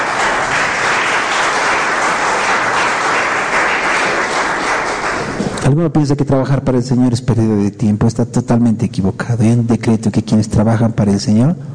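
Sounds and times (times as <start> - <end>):
strong applause: 0.0 - 5.7
speech: 5.7 - 11.7.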